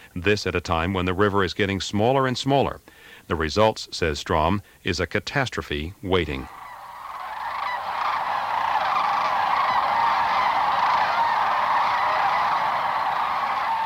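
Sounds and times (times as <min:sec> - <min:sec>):
speech: 0:00.2 - 0:06.6
large flock of cranes calling: 0:06.4 - 0:13.8.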